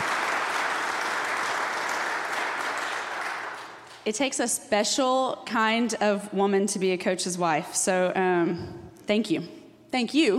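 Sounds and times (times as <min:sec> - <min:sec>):
audience applause: 0:00.0 - 0:04.0
speech: 0:04.0 - 0:10.3.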